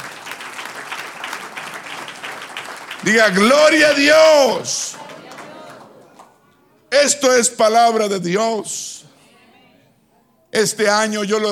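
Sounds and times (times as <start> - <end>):
audience applause: 0.0 - 6.3
speech: 3.0 - 4.9, 7.0 - 9.0, 10.6 - 11.4.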